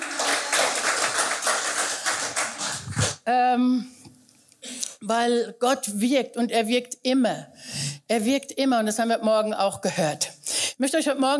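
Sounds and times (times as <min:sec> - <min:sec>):
audience clapping: 0:00.0 - 0:03.2
speech: 0:03.2 - 0:04.0, 0:05.0 - 0:11.3.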